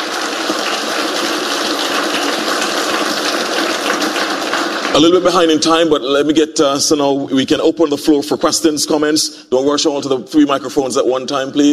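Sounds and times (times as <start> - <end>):
audience applause for panelists: 0.0 - 5.6
speech: 5.0 - 11.7.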